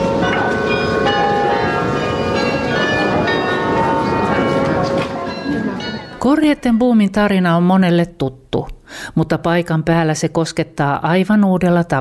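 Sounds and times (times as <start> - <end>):
church bells ringing: 0.0 - 7.0
speech: 6.2 - 11.9.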